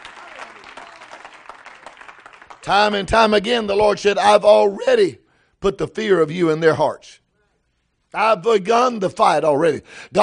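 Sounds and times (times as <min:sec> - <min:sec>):
audience clapping hands: 0:00.0 - 0:03.3
speech: 0:02.6 - 0:07.2, 0:08.1 - 0:10.2.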